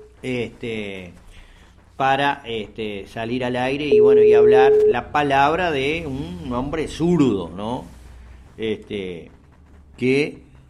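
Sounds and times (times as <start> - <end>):
speech: 0.2 - 1.2, 2.0 - 8.0, 8.6 - 9.4, 10.0 - 10.6
voice over telephone line: 3.8 - 6.0
telephone line ringing as a radio station calls a guest: 3.9 - 5.1.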